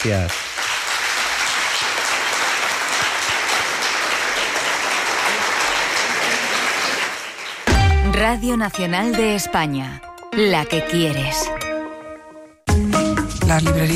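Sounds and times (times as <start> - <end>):
speech: 0.0 - 0.4, 8.2 - 11.6, 13.5 - 13.9
crowd applause: 0.0 - 7.8.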